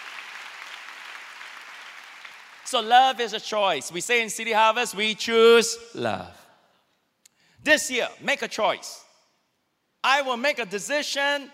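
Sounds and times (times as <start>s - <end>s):
church congregation clapping: 0.0s - 3.5s
speech: 2.7s - 6.4s, 7.6s - 9.0s, 10.0s - 11.5s.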